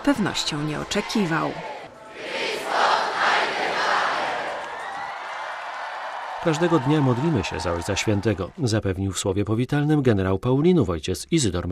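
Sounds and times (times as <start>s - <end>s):
speech: 0.0s - 2.3s, 6.4s - 11.7s
crowd cheering an ovation for Pope Benedict XVI at Jasna Góra: 0.0s - 9.3s.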